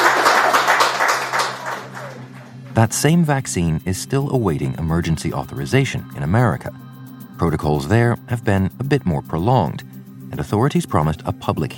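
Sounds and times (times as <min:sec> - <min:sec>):
few people clapping: 0:00.0 - 0:02.8
speech: 0:02.8 - 0:11.7.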